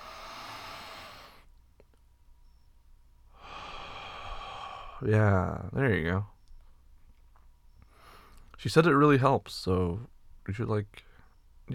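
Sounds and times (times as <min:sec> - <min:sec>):
slow breathing in through the nose out through the mouth: 0:00.0 - 0:01.5, 0:03.3 - 0:05.1, 0:07.8 - 0:08.5
speech: 0:05.0 - 0:06.3, 0:08.6 - 0:11.1.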